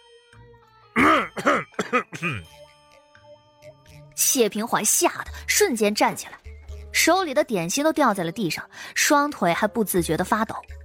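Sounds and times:
narrator imitating a man's dry cough: 1.0s - 2.6s
speech: 1.0s - 2.6s, 4.2s - 6.4s, 7.0s - 10.7s.

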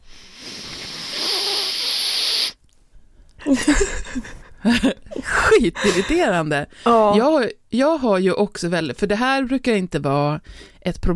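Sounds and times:
inhaling through a blocked nostril: 0.0s - 2.6s
speech: 3.5s - 11.1s.

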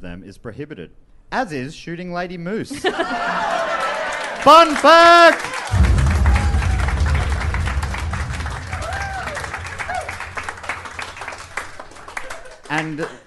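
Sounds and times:
speech: 0.0s - 3.8s, 4.4s - 5.9s, 12.8s - 13.2s
laughter: 2.7s - 4.1s
voices calling and cheering: 3.1s - 7.6s, 8.3s - 10.3s
group clapping: 3.4s - 13.2s.

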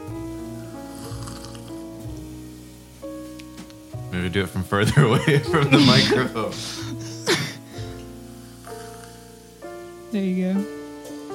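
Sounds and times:
short hissing bursts: 0.0s - 4.0s, 6.2s - 11.3s
person sipping tea: 0.9s - 1.8s
speech: 4.1s - 7.4s, 10.1s - 10.8s
laughter: 4.7s - 7.6s.

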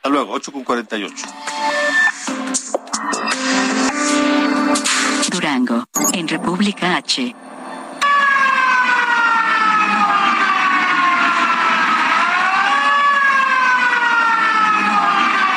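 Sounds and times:
speech: 0.1s - 3.6s, 4.7s - 7.5s
alarm siren wailing after plant explosion: 6.1s - 15.5s.

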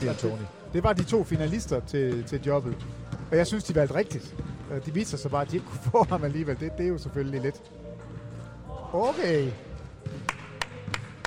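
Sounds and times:
speech: 0.0s - 7.8s, 8.9s - 9.7s
hand clapping: 10.1s - 11.2s.

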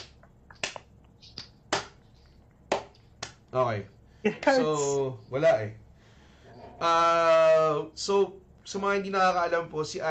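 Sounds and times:
hands clapping at a show: 0.0s - 2.0s, 2.7s - 3.4s
speech: 3.5s - 5.8s, 6.8s - 10.0s.

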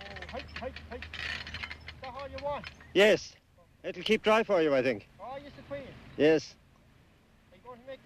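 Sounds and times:
recurring short squeaks: 0.0s - 3.0s
haymaking farm machine passing by with mechanical rattle: 0.0s - 3.1s
speech: 2.3s - 6.6s.

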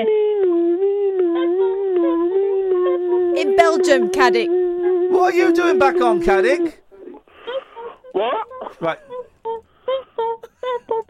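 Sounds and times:
voice imitating passing ambulance siren: 0.0s - 6.8s
speech: 3.7s - 6.8s, 8.2s - 9.1s.

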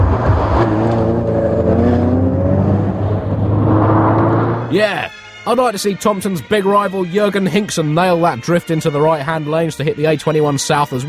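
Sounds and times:
car driving on the M25 motorway near Junction 5: 0.0s - 4.8s
road noise on the M25 motorway: 0.0s - 4.8s
speech: 4.7s - 11.0s.

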